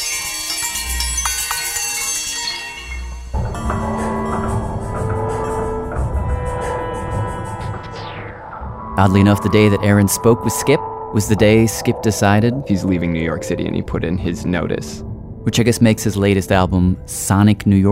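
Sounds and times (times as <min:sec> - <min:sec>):
neighborhood sounds filtered to sound like bells: 0:00.0 - 0:04.6, 0:09.3 - 0:16.4
sustained pitched drones: 0:04.6 - 0:17.2
low rumble: 0:07.6 - 0:17.3
speech: 0:09.0 - 0:17.9.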